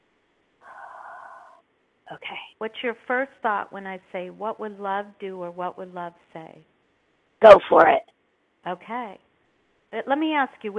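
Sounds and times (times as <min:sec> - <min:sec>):
deep breath drawn in: 0:00.6 - 0:01.6
speech: 0:02.1 - 0:06.7, 0:07.4 - 0:09.2, 0:09.9 - 0:10.7.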